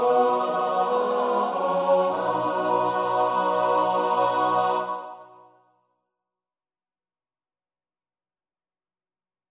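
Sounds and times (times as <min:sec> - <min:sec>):
SATB choir part practice singing: 0:00.0 - 0:05.6.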